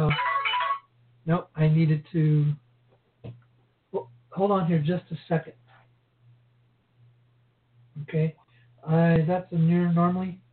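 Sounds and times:
phone ringing: 0:00.0 - 0:00.9
speech: 0:01.3 - 0:02.6, 0:04.4 - 0:05.6, 0:08.0 - 0:10.4.

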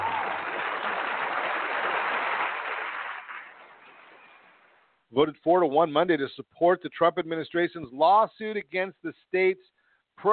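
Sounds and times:
applause: 0:00.0 - 0:04.6
speech: 0:05.2 - 0:10.3.

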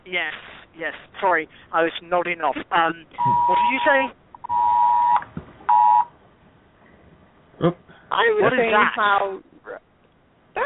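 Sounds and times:
speech: 0:00.1 - 0:04.2, 0:07.6 - 0:09.5
phone emergency alert tone: 0:03.2 - 0:06.1.

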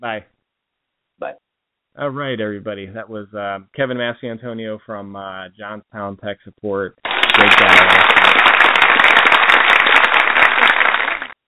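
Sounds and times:
speech: 0:00.0 - 0:00.3, 0:01.2 - 0:01.4, 0:02.0 - 0:08.8
applause: 0:07.0 - 0:11.4.

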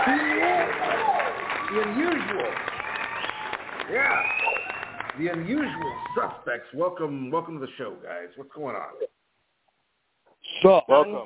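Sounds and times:
audience applauding guests of a wrestling talk show: 0:00.0 - 0:06.5
speech: 0:01.7 - 0:02.7, 0:03.9 - 0:04.4, 0:05.2 - 0:09.1, 0:10.6 - 0:11.2.

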